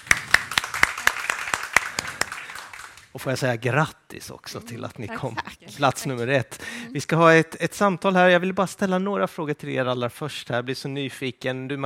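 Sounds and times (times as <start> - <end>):
applause: 0.0 - 3.3
speech: 3.1 - 11.8.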